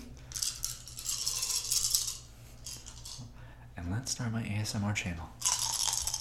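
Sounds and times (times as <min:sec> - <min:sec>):
handful of dice rattling: 0:00.3 - 0:03.3, 0:05.4 - 0:06.1
speech: 0:03.8 - 0:05.5.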